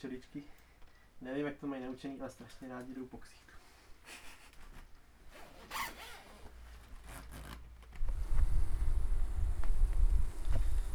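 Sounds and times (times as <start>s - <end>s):
speech: 0.0s - 0.6s, 1.2s - 4.3s
beekeeping suit zipper pulls: 5.3s - 10.9s
steady low rumble of wind: 8.1s - 10.9s.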